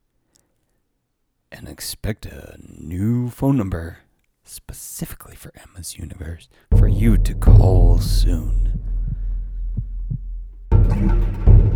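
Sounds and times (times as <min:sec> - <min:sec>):
speech: 0:01.8 - 0:08.9
heart beating: 0:06.7 - 0:11.7.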